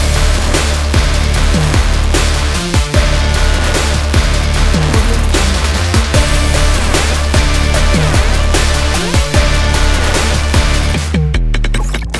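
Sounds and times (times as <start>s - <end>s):
energetic sport promo logo music: 0.0s - 12.0s.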